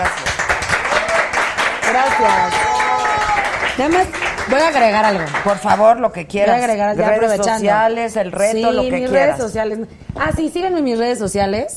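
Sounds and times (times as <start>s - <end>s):
applause: 0.0s - 6.0s
speech: 2.0s - 2.7s, 3.8s - 11.7s.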